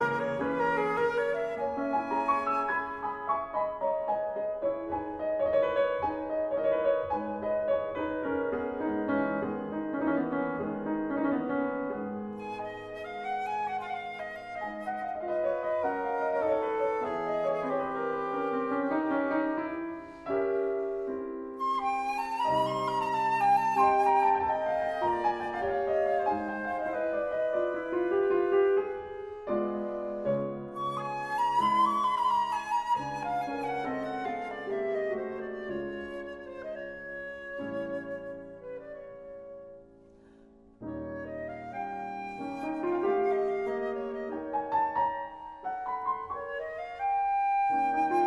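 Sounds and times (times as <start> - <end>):
flute and piano piece, allegro moderato: 0.0 - 48.2.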